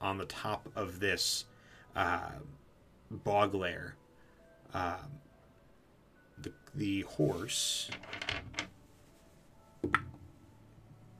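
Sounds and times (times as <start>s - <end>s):
speech: 0.1s - 4.0s, 4.7s - 5.2s, 6.4s - 8.6s, 9.8s - 10.1s
dice clattering across a hard surface: 7.8s - 8.8s.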